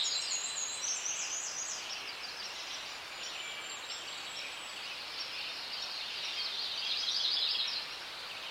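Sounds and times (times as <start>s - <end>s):
forest birds singing in a forest: 0.0s - 8.4s.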